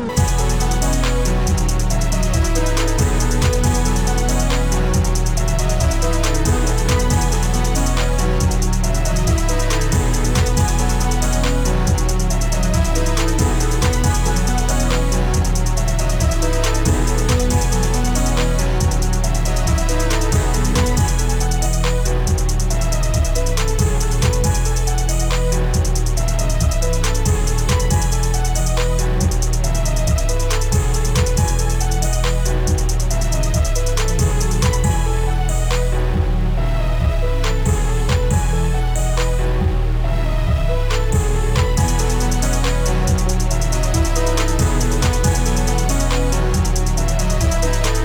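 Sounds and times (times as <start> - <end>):
orchestral music: 0.1 - 48.0.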